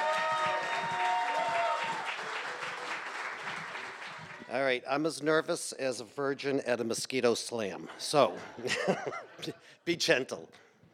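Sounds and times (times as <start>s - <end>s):
cheering and whistling: 0.0s - 4.4s
audience applause: 0.0s - 4.5s
speech: 4.5s - 10.7s
laughter: 7.8s - 9.8s.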